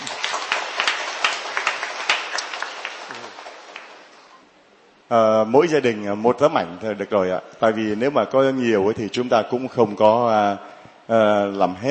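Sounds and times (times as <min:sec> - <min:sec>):
audience applause: 0:00.0 - 0:04.4
speech: 0:05.1 - 0:11.8.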